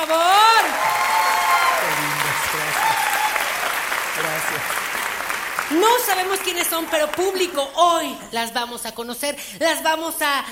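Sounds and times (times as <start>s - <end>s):
audience applause: 0.0s - 7.7s
speech: 5.7s - 10.5s.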